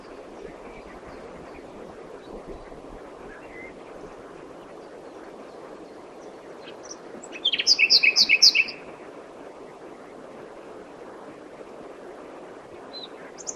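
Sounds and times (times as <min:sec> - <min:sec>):
common nightingale singing: 0:06.6 - 0:08.8, 0:12.9 - 0:13.5.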